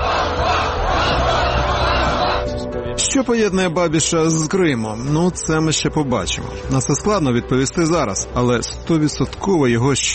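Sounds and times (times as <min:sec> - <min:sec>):
large protest crowd chanting and shouting in a city square: 0:00.0 - 0:02.7
speech: 0:03.1 - 0:10.1.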